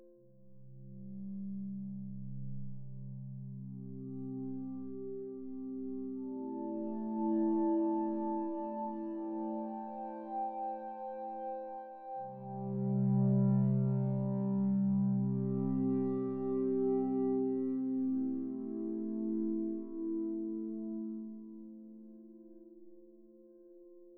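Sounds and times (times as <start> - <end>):
woodwind pad ambience: 3.8 - 21.9.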